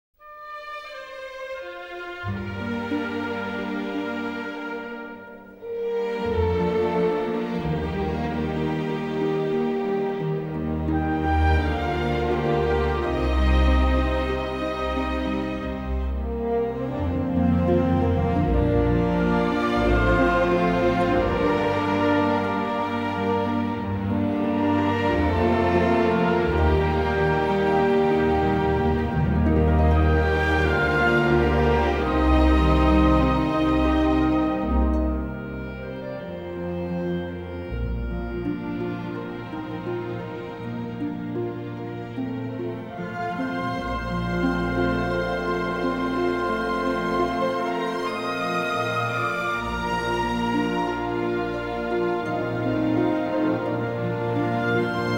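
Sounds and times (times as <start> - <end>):
instrumental music: 0.2 - 55.1.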